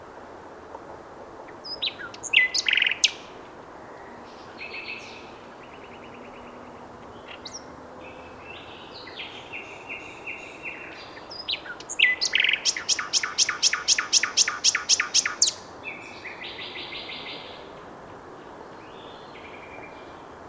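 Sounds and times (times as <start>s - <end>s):
common nightingale singing: 1.5s - 3.3s, 4.0s - 17.8s.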